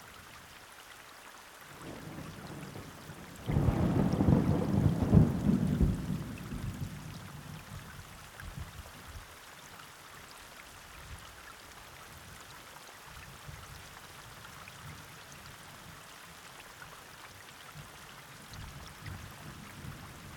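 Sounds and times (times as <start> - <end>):
thunderstorm: 3.4 - 7.0.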